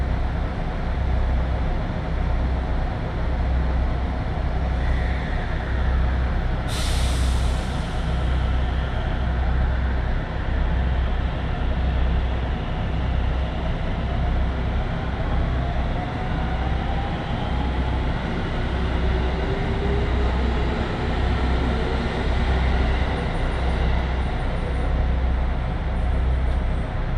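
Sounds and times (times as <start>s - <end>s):
Tokaido Line 311 series local train rumbling: 0.0s - 27.1s
sharp hiss: 6.7s - 8.2s.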